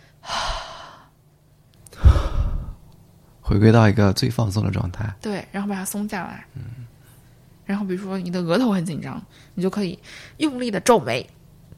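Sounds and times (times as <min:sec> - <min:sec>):
person breathing out deeply after a hard shoulder shrug: 0:00.2 - 0:01.2, 0:01.9 - 0:02.9
speech: 0:03.5 - 0:07.0, 0:07.7 - 0:11.4.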